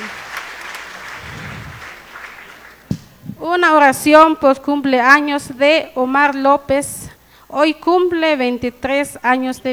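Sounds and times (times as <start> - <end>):
audience applauding: 0.0 - 2.9
speech: 3.5 - 9.7.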